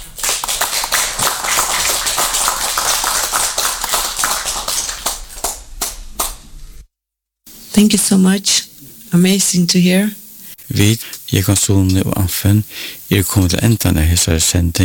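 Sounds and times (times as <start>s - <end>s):
audience clapping: 0.0s - 6.5s
speech: 7.8s - 14.8s.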